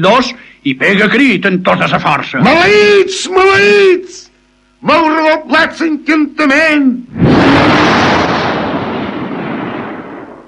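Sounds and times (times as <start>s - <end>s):
speech: 0.0s - 4.2s, 4.8s - 8.4s
thunderclap: 7.2s - 10.4s.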